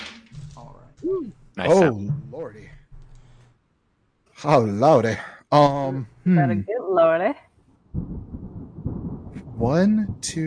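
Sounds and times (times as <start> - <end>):
speech: 1.0 - 2.8, 4.4 - 7.4, 9.6 - 10.4
loud thunder clap: 8.0 - 10.4.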